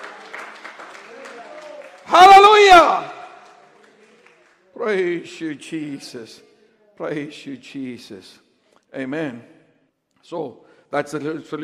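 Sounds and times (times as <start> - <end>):
audience clapping: 0.0 - 5.0
speech: 2.1 - 3.0, 4.9 - 9.6, 10.2 - 11.6.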